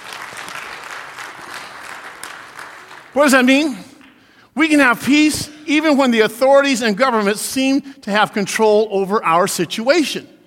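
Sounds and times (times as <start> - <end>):
audience applause at a sermon: 0.0 - 3.7
speech: 3.1 - 3.9, 4.6 - 10.4.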